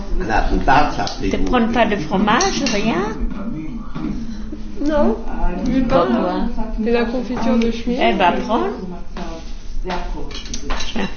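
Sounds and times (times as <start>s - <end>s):
speech: 0.2s - 3.7s, 4.8s - 8.9s, 9.8s - 10.2s
spoons and cutlery clinking against dishes at a breakfast table: 2.3s - 3.1s, 10.3s - 11.1s.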